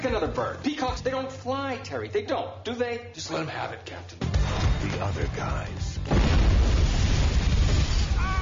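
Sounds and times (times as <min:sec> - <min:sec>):
speech: 0:00.1 - 0:07.2
movie explosion: 0:06.0 - 0:08.4.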